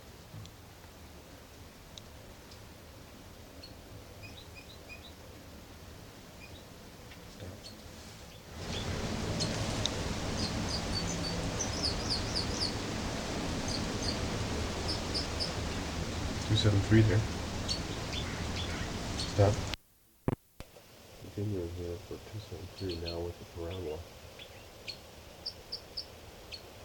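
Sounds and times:
bird song: 3.6s - 5.3s, 6.4s - 6.8s, 7.4s - 19.7s, 22.4s - 26.7s
speech: 16.6s - 17.4s, 21.8s - 24.2s.

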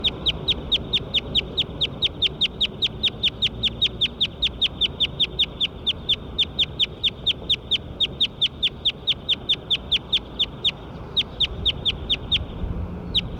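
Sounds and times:
bird call of sharp high-pitched chips: 0.0s - 13.3s
low hum: 0.0s - 13.3s.

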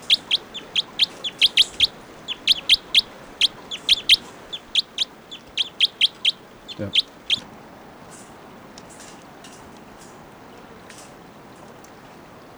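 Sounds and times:
bird song of high-pitched chirps: 0.0s - 7.5s
low steady hiss: 0.0s - 12.5s
speech: 6.8s - 7.1s.

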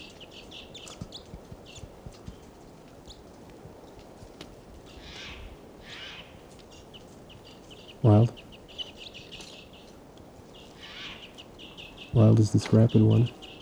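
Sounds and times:
wild bird calling: 4.9s - 13.5s
speech: 8.0s - 8.4s, 12.2s - 13.4s.

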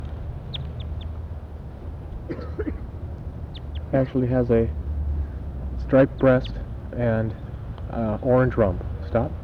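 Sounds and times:
wild bird calling near the net: 0.0s - 1.2s, 2.1s - 8.2s
speech: 2.3s - 2.8s, 3.9s - 4.8s, 5.9s - 9.4s.

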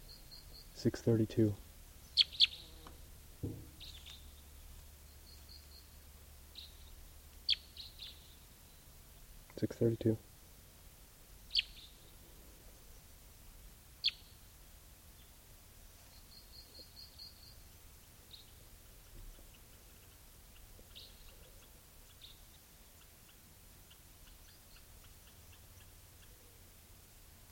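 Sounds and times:
wild male bird singing: 0.0s - 0.8s, 2.0s - 8.9s, 11.4s - 12.2s, 14.0s - 14.4s, 16.0s - 26.7s
speech: 0.8s - 1.6s, 9.6s - 10.3s.

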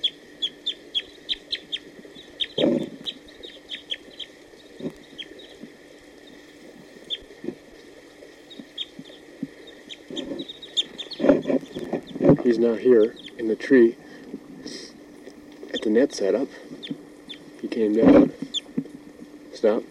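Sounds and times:
wild male bird song phrases: 0.0s - 5.6s, 8.4s - 13.7s
speech: 12.5s - 14.0s, 15.9s - 16.6s, 17.8s - 18.3s, 19.6s - 19.8s.

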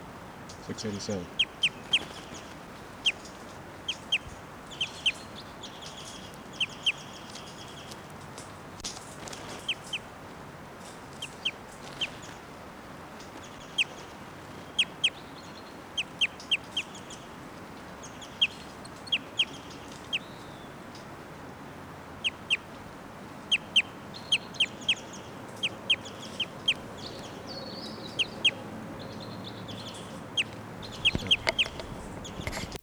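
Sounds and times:
caged bird giving flight calls: 0.0s - 32.8s
speech: 0.7s - 1.4s.

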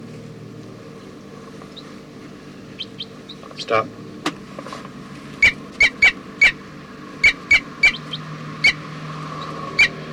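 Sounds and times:
bird squeaky calls while being held in the hand: 2.8s - 3.5s, 5.4s - 6.6s, 7.2s - 8.8s, 9.4s - 10.0s
speech: 3.6s - 4.0s.

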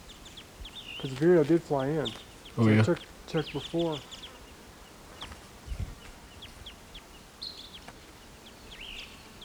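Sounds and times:
western wood peewee calling: 0.0s - 4.6s
speech: 1.0s - 4.2s.

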